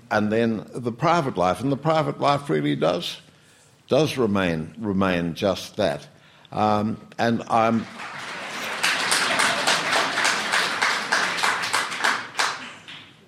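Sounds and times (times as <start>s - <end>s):
speech: 0.1s - 3.3s, 3.9s - 8.2s
clapping: 7.7s - 13.2s.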